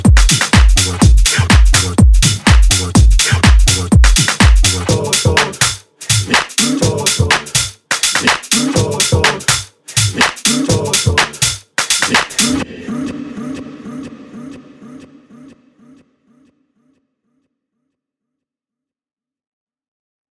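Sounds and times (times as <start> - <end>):
Afro Tech vocals: 0.0 - 17.0.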